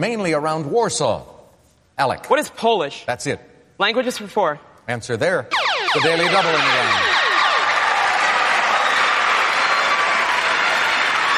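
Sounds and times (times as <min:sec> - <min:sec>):
speech: 0:00.0 - 0:01.4, 0:02.0 - 0:07.2
studio audience cheering: 0:05.8 - 0:11.3.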